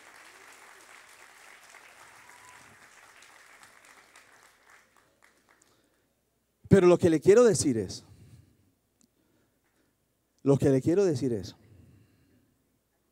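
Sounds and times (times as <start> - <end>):
audience applause: 0.0 - 5.7
speech: 6.7 - 8.1, 10.5 - 11.6.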